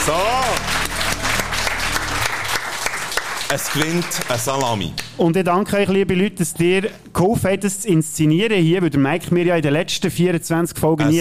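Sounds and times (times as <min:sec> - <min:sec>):
speech: 0:00.0 - 0:00.7, 0:03.5 - 0:11.2
audience applause: 0:00.0 - 0:05.1.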